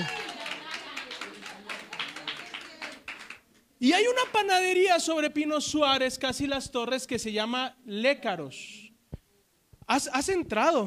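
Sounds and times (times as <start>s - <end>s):
audience applause: 0.0s - 3.4s
speech: 3.8s - 8.8s, 9.9s - 10.8s.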